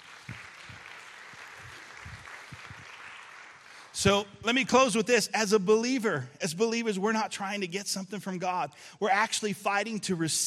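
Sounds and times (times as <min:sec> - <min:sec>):
audience applause: 0:00.0 - 0:04.2
speech: 0:04.0 - 0:10.4.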